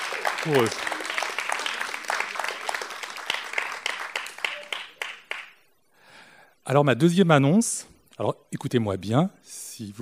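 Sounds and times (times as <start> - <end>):
audience applause: 0.0 - 5.6
speech: 0.4 - 1.0, 6.7 - 10.0.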